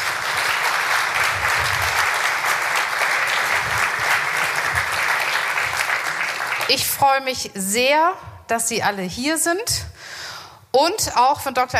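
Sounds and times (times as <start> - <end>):
audience applause: 0.0 - 6.8
speech: 6.7 - 10.2, 10.8 - 11.7.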